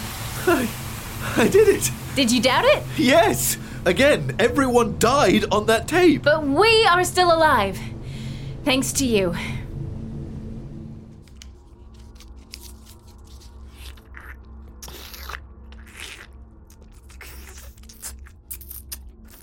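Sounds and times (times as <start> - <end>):
low steady rumble: 0.0 - 13.6
speech: 0.4 - 7.9, 8.6 - 9.6
someone crunching and chewing crunchy food: 11.3 - 19.4.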